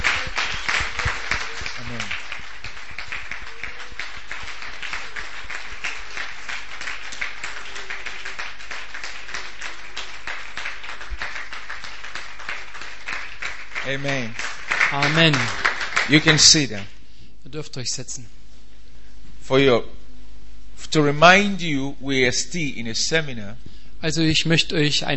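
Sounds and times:
church congregation rhythmic clapping: 0.0 - 16.9
speech: 13.9 - 18.4, 19.5 - 20.0, 20.9 - 25.1.

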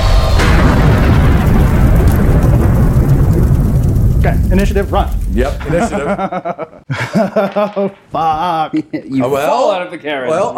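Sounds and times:
fire blast bursting doors open: 0.0 - 6.2
speech: 4.5 - 10.5
laughter: 5.6 - 9.4.

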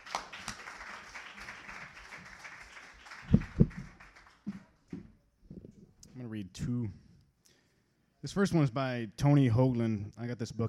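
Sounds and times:
audience applause for a performer: 0.0 - 4.9
speech: 6.2 - 7.0, 8.2 - 10.6.

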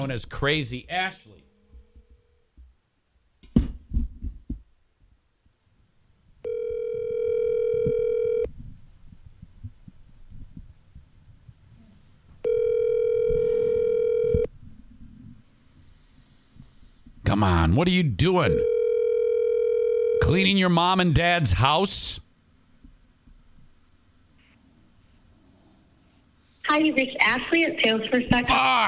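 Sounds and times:
speech: 0.0 - 1.4, 17.4 - 18.7, 20.3 - 22.2, 26.7 - 28.8
telephone ringback tone while placing a call: 6.4 - 8.5, 12.4 - 14.5, 18.5 - 20.3.

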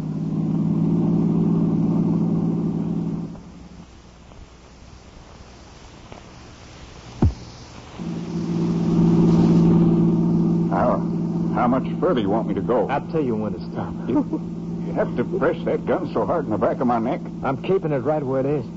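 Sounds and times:
car engine droning: 0.0 - 4.0, 8.0 - 18.7
sharp thump: 7.2 - 7.5
speech: 11.7 - 18.7
laughter: 13.6 - 15.9.

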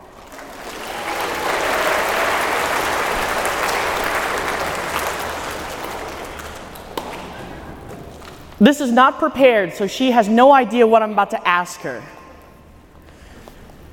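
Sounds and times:
audience applause: 0.0 - 7.4
speech: 8.6 - 12.2.

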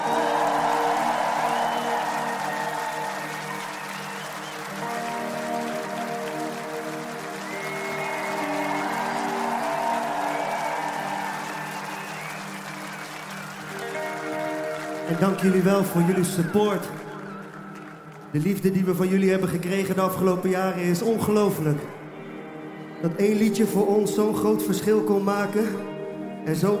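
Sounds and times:
audience applause: 0.0 - 19.2
speech: 15.1 - 17.1, 18.3 - 22.0, 23.0 - 26.7.

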